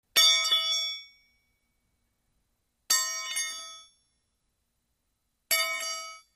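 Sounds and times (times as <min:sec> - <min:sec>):
crowbar dropping on concrete: 0:00.2 - 0:01.1, 0:02.9 - 0:03.9, 0:05.5 - 0:06.3.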